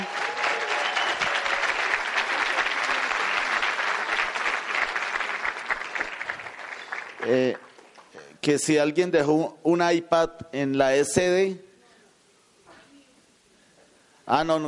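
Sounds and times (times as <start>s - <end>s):
audience applause: 0.0s - 8.1s
speech: 7.3s - 7.6s, 8.4s - 11.6s, 14.3s - 14.6s.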